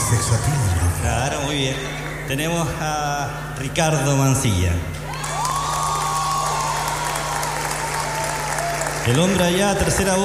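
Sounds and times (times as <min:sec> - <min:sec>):
crowd cheering and shouting: 0:00.0 - 0:02.2, 0:04.4 - 0:10.2
low steady hum: 0:00.0 - 0:10.2
speech: 0:00.1 - 0:05.0, 0:09.0 - 0:10.2
steady applause: 0:01.3 - 0:02.4, 0:05.1 - 0:10.2.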